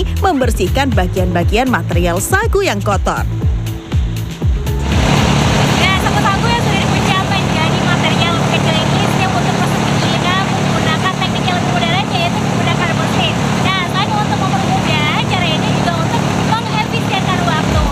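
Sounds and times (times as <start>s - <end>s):
speech: 0.2s - 3.5s
engine-driven sago palm grinding machine running: 4.7s - 17.8s.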